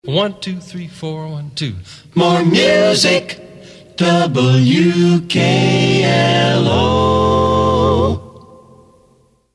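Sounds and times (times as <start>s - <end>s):
person singing a cappella for an audition: 2.1s - 8.8s.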